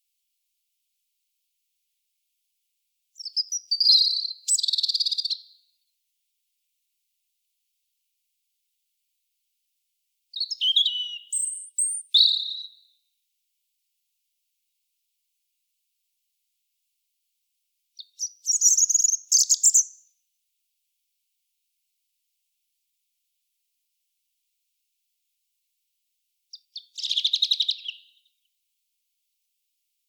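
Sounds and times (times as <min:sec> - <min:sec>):
European robin singing: 0:03.2 - 0:05.5, 0:10.3 - 0:13.0, 0:18.0 - 0:20.1, 0:26.5 - 0:28.4.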